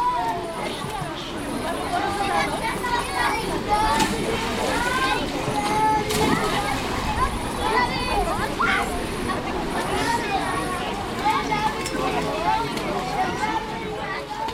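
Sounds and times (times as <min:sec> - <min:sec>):
children chattering and shouting at an outdoor public swimming pool in Dub: 0:00.0 - 0:14.5
water splashing at an outdoor public swimming pool in Dub: 0:03.6 - 0:10.0.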